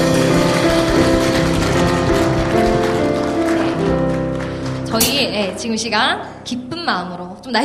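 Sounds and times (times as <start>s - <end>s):
audience applause: 0.2s - 4.8s
speech: 5.6s - 7.6s.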